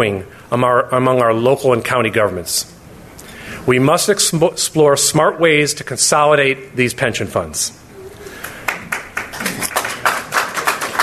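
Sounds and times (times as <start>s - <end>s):
speech: 0.0s - 2.8s, 3.6s - 7.8s
audience applause: 8.4s - 11.0s.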